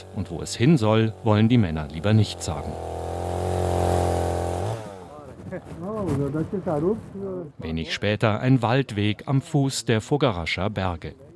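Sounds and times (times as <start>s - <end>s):
chainsaw cutting tree trunks: 0.0s - 5.4s
speech: 0.2s - 3.2s, 5.5s - 11.3s.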